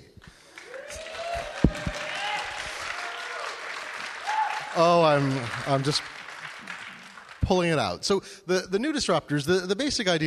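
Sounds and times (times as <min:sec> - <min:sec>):
audience applause: 0:00.4 - 0:08.0
speech: 0:04.8 - 0:06.1, 0:07.5 - 0:10.2.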